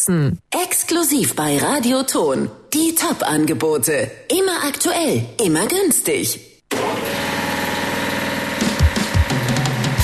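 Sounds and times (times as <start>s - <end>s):
speech: 0.0s - 6.5s
air compressor running, purring: 6.7s - 10.0s.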